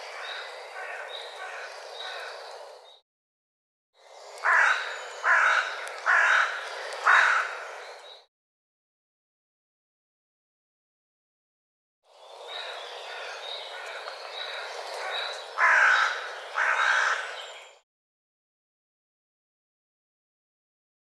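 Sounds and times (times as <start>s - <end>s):
bird harsh rasping calls: 0.0s - 2.4s, 4.4s - 7.8s, 12.5s - 17.6s.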